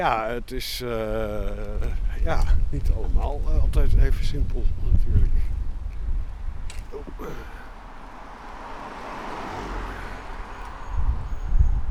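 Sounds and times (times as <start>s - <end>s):
speech: 0.0s - 5.4s, 7.0s - 7.5s
Ford Mustang car driving past: 7.4s - 11.9s.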